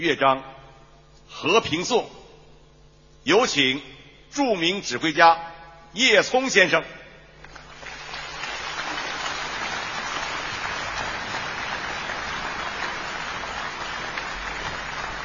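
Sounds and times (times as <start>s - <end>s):
speech: 0.0s - 0.5s, 1.3s - 2.2s, 3.2s - 7.0s
audience applause: 7.5s - 15.2s.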